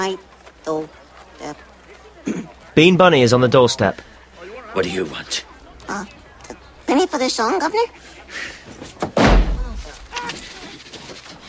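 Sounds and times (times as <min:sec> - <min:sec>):
speech: 0:00.0 - 0:01.7, 0:02.8 - 0:04.1, 0:04.7 - 0:06.2, 0:06.9 - 0:08.8
door slamming shut: 0:09.0 - 0:10.4.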